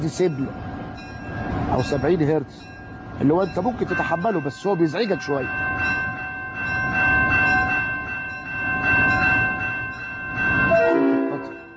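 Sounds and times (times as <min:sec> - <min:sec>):
speech: 0:00.0 - 0:00.7, 0:01.7 - 0:06.0
train rumbling past: 0:00.0 - 0:11.7
train horn: 0:10.7 - 0:11.7.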